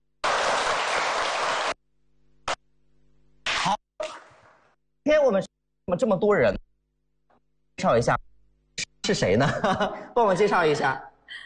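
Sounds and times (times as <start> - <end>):
applause: 0.2 - 1.8
speech: 5.1 - 6.6, 7.8 - 8.2, 9.1 - 11.4.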